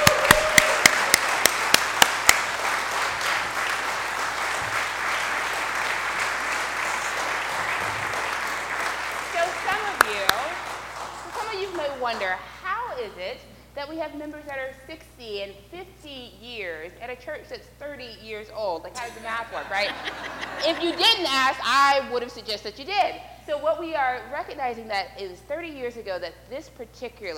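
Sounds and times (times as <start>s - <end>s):
audience applause: 0.0s - 12.4s
speech: 13.9s - 27.3s
laughter: 19.0s - 21.4s.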